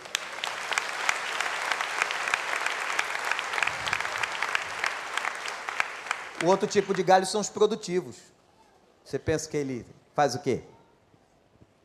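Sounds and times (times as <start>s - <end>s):
applause: 0.0s - 7.6s
speech: 6.4s - 8.4s, 9.1s - 10.7s.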